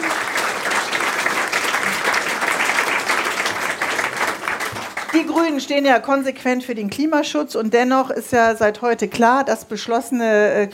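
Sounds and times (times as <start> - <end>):
audience applause: 0.0 - 5.6
speech: 5.2 - 10.7.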